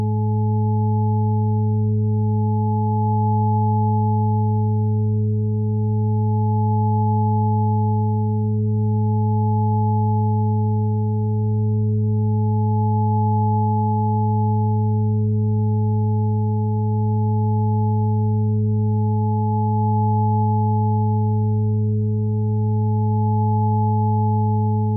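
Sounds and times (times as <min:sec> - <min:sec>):
852 Hz tone: 0:00.0 - 0:24.9.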